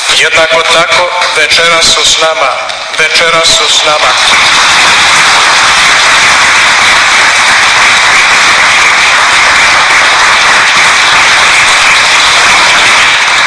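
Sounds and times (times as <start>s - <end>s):
speech: 0.2s - 5.4s
audience applauding a missionary: 3.8s - 13.4s.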